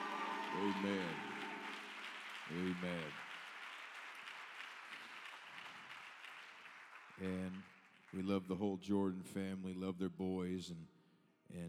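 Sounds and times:
audience clapping hands: 0.0s - 8.4s
speech: 0.5s - 1.3s, 2.5s - 3.2s, 7.2s - 11.6s.

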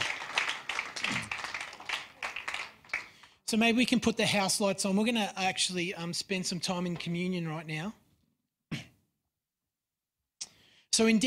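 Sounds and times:
audience clapping: 0.0s - 3.4s
speech: 3.5s - 8.0s, 11.0s - 11.2s.

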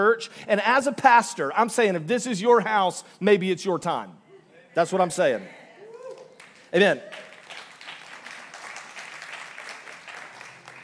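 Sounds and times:
speech: 0.0s - 4.2s, 4.8s - 5.6s, 6.7s - 7.3s
applause from church serve team: 6.2s - 10.8s.

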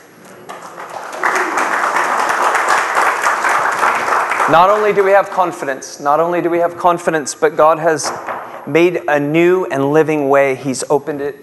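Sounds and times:
audience clapping: 0.3s - 5.8s
speech: 4.5s - 11.4s.

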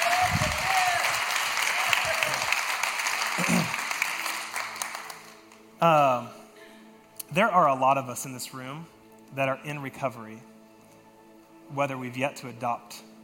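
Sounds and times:
audience applause: 0.0s - 5.6s
speech: 7.4s - 10.5s, 11.7s - 13.1s.

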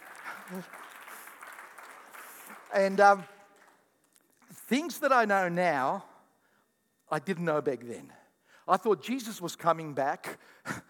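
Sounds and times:
crowd applauding: 0.0s - 3.9s
speech: 0.5s - 0.8s, 2.7s - 3.3s, 4.7s - 6.1s, 7.1s - 10.8s.

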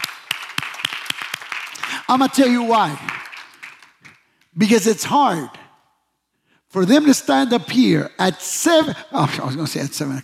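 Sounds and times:
audience applauding: 0.0s - 4.2s
speech: 2.1s - 3.2s, 4.6s - 5.6s, 6.7s - 10.2s.

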